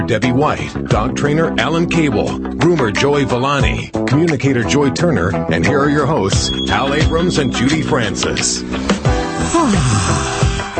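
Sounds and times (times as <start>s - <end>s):
speech: 0.0s - 10.4s
drawn-out human yawn: 9.2s - 10.6s.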